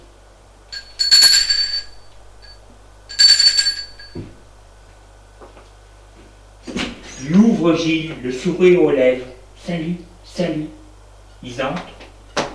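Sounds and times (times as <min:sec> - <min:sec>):
doorbell ringing: 0:00.8 - 0:04.2
speech: 0:07.3 - 0:10.8, 0:11.4 - 0:11.9.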